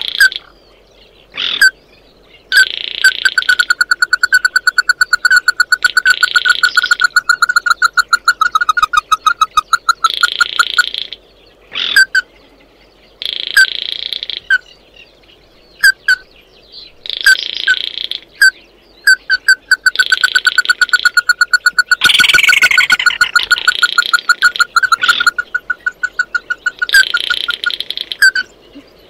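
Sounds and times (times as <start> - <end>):
bird piping calls: 0.0 - 29.0.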